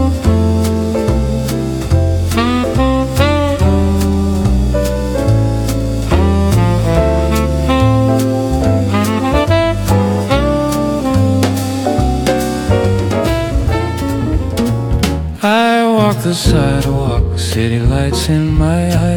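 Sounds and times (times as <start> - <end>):
jazz music in a bar: 0.0 - 19.1.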